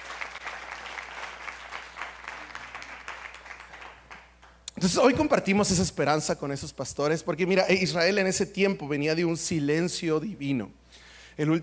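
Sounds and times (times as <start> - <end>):
audience applauding: 0.0 - 4.6
speech: 4.8 - 10.8, 11.4 - 11.6.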